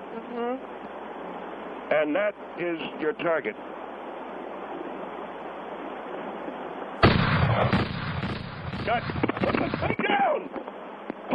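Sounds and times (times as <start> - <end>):
speech: 1.9 - 3.8, 8.9 - 10.8
gunshots during target practice: 7.0 - 10.0.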